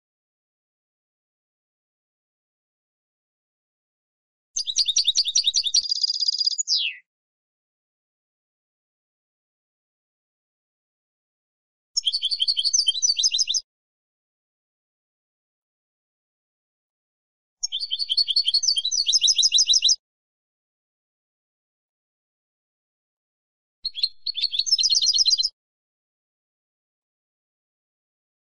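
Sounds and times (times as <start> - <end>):
European goldfinch singing: 4.6 - 7.0, 12.0 - 13.6, 17.6 - 20.0, 23.9 - 25.5.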